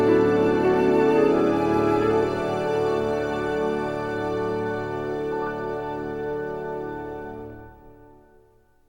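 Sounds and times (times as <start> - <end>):
lyrical piano: 0.0 - 8.6.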